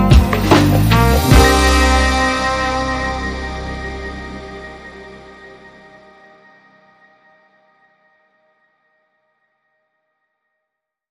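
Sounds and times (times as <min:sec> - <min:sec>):
blissful beat: 0:00.0 - 0:06.8.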